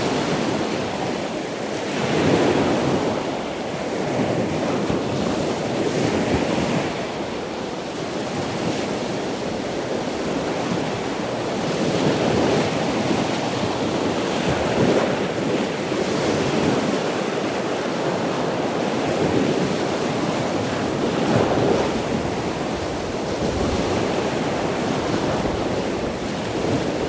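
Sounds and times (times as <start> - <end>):
sea waves: 0.0 - 27.0.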